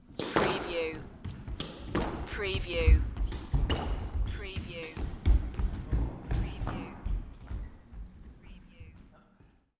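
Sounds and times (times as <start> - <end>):
squash ball rally: 0.0 - 7.8.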